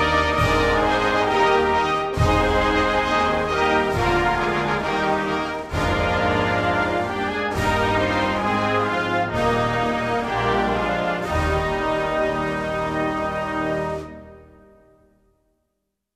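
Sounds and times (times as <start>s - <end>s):
navy band playing a national anthem: 0.0s - 14.9s.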